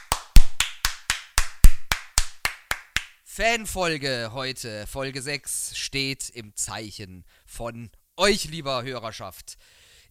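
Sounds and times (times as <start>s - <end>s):
applause: 0.0s - 3.1s
speech: 3.4s - 10.0s.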